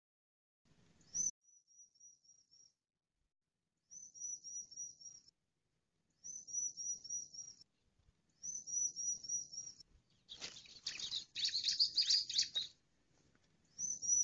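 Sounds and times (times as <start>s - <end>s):
Bar-winged prinia song: 10.3s - 12.8s.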